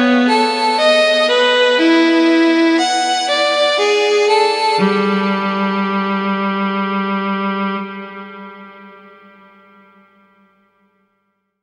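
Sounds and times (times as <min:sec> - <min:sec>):
solo violin sonata largo movement: 0:00.0 - 0:08.3.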